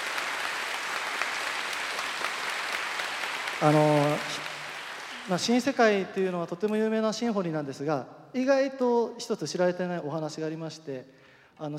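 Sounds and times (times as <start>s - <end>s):
audience applause for the orchestra: 0.0s - 6.0s
speech: 3.6s - 4.5s, 5.3s - 11.7s.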